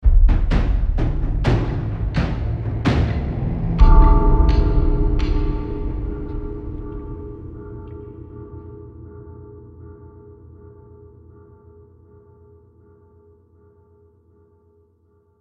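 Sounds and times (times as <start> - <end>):
tense combat music ending: 0.1 - 9.0.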